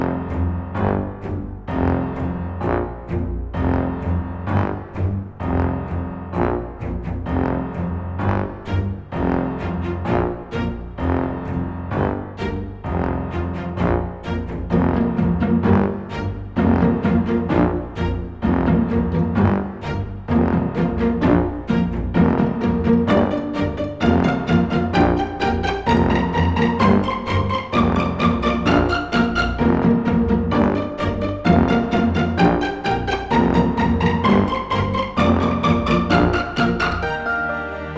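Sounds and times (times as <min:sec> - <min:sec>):
instrumental music: 0:00.0 - 0:37.9.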